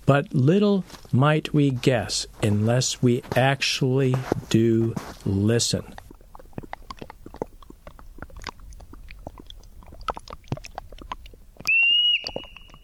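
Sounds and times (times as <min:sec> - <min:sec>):
speech: 0:00.1 - 0:06.0
Olympic marmot chewing in Olympic National Park: 0:00.9 - 0:12.8
bright high whistle: 0:11.7 - 0:12.8.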